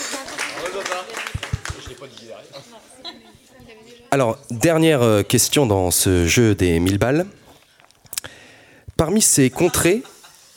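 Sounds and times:
audience clapping: 0:00.0 - 0:02.4
laughter: 0:00.6 - 0:03.6, 0:09.5 - 0:10.5
speech: 0:00.7 - 0:07.4, 0:09.0 - 0:10.2.

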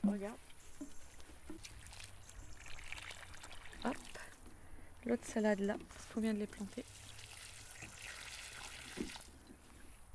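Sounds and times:
speech: 0:00.0 - 0:01.0, 0:03.8 - 0:04.1, 0:05.0 - 0:07.0
water trickling from a watering can onto lettuce and vegetable plants: 0:00.0 - 0:10.0.

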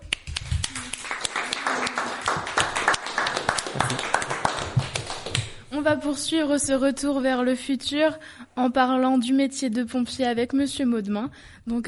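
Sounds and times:
small group clapping: 0:00.0 - 0:06.2
speech: 0:05.8 - 0:11.8.

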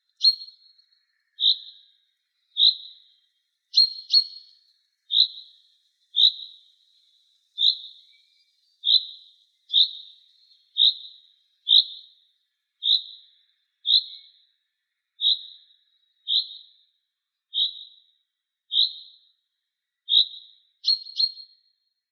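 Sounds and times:
bird singing a high clear note around a school: 0:00.0 - 0:22.1.

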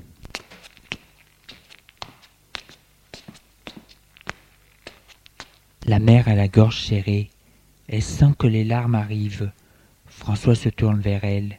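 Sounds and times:
footsteps walking down a corridor: 0:00.0 - 0:05.8
low hum: 0:00.0 - 0:11.5
speech: 0:05.9 - 0:07.3, 0:07.9 - 0:09.6, 0:10.2 - 0:11.5.

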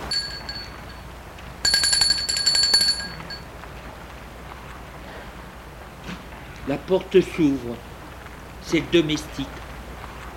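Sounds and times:
doorbell ringing: 0:00.1 - 0:03.5
speech: 0:06.7 - 0:07.9, 0:08.7 - 0:09.6.

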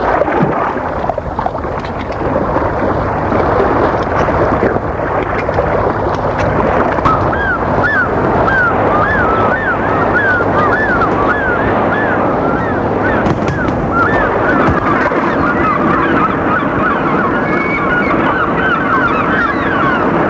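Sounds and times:
waves breaking on a beach: 0:00.0 - 0:20.2
short high chirping calls: 0:07.0 - 0:20.0.

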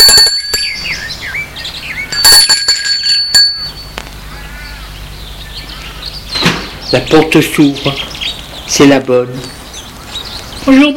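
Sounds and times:
doorbell ringing: 0:00.0 - 0:00.9, 0:02.1 - 0:04.0
speech: 0:06.9 - 0:08.1, 0:08.7 - 0:09.6, 0:10.6 - 0:10.9.

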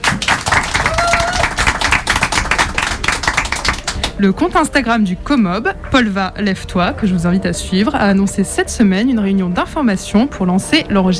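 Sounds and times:
crowd applauding: 0:00.0 - 0:04.3
speech: 0:04.2 - 0:11.1.

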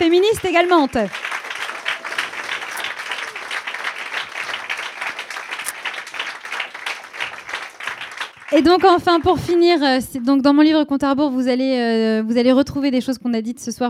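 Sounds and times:
audience applause: 0:00.0 - 0:09.8
speech: 0:00.3 - 0:01.3, 0:08.5 - 0:13.8.

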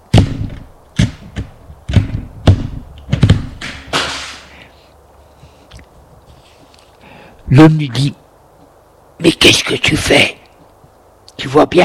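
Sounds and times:
young man trying to open a white van's door: 0:00.1 - 0:03.7
speech: 0:07.5 - 0:08.2, 0:09.2 - 0:10.4, 0:11.4 - 0:11.8.

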